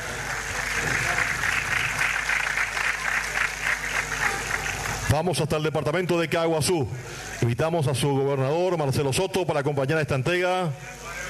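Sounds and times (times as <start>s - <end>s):
audience applause: 0.0s - 5.4s
speech: 5.1s - 11.0s.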